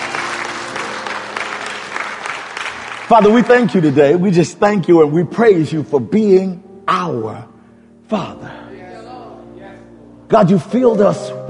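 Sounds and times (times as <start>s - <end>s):
church congregation clapping hands in praise: 0.0s - 5.1s
speech: 3.1s - 7.5s, 8.1s - 8.6s, 10.3s - 11.4s.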